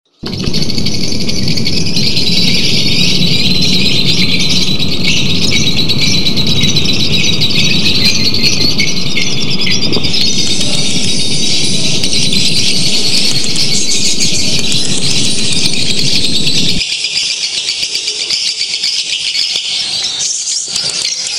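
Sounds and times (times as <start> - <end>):
lovebird singing with high squeaky chirps and trills: 0.1 - 21.3.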